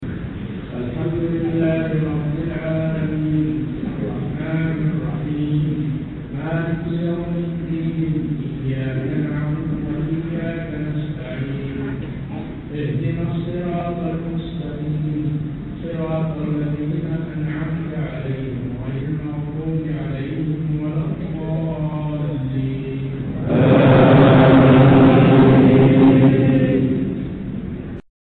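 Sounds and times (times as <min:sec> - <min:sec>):
Quran recitation: 0:00.8 - 0:27.4.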